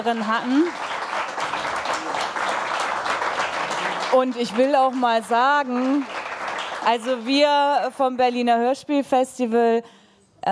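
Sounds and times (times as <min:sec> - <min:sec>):
speech: 0:00.0 - 0:01.5, 0:04.1 - 0:06.2, 0:06.8 - 0:10.4
audience applause: 0:00.1 - 0:07.3.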